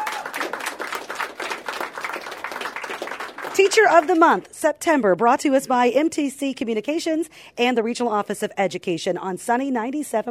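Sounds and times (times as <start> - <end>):
applause from a crowd: 0.0 - 4.5
speech: 3.6 - 10.3.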